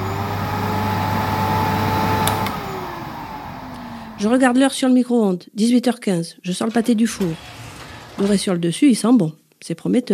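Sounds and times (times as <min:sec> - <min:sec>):
bagless vacuum cleaner vacuuming kitchen: 0:00.0 - 0:04.6
speech: 0:04.2 - 0:07.6, 0:08.2 - 0:10.1.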